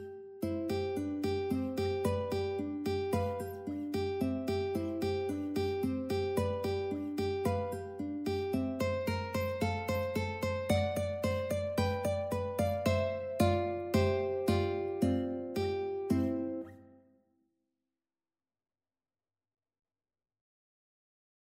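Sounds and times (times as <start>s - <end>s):
ukulele duet playing a sonatina: 0.5s - 16.7s.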